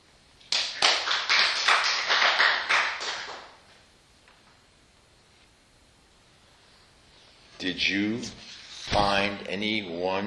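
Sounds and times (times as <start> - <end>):
hands clapping: 0.4 - 3.6
speech: 7.6 - 10.2.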